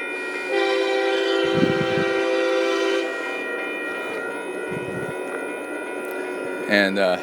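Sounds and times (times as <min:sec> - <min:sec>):
heavy loaded diesel train passing: 0:00.0 - 0:07.2.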